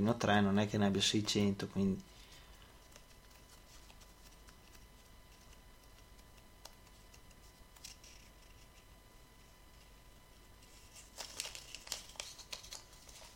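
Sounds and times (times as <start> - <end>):
speech: 0.0 - 2.2
paper pizza receipt being handled and crinkled: 1.4 - 8.8, 10.6 - 13.3.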